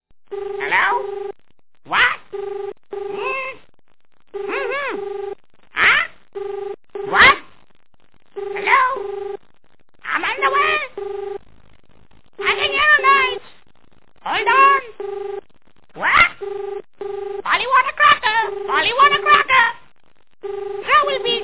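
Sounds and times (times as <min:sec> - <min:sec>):
Polly voice: 0:00.6 - 0:01.1, 0:01.9 - 0:02.2, 0:03.1 - 0:03.6, 0:04.5 - 0:05.0, 0:05.8 - 0:06.1, 0:07.1 - 0:07.5, 0:08.6 - 0:09.0, 0:10.0 - 0:10.9, 0:12.4 - 0:13.6, 0:14.2 - 0:14.9, 0:16.0 - 0:16.4, 0:17.4 - 0:19.8, 0:20.8 - 0:21.4.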